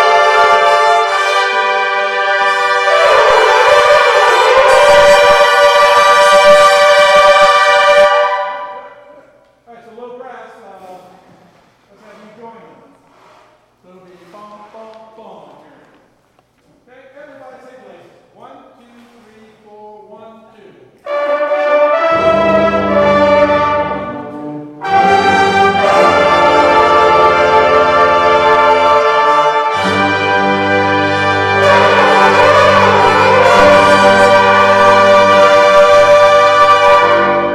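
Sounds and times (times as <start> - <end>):
brass instrument practice: 0.0 - 9.5, 21.0 - 37.5.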